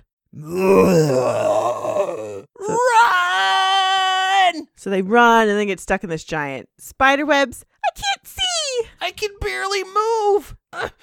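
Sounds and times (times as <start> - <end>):
speech: 0.4 - 1.5, 4.9 - 11.0
imitated monster growl: 0.4 - 3.2
rising strained wail: 0.4 - 4.3.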